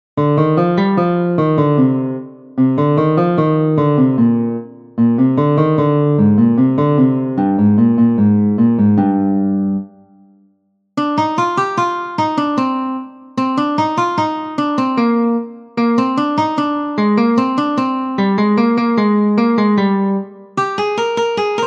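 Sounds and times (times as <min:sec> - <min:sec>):
guitar: 0:00.2 - 0:10.2, 0:11.0 - 0:21.6.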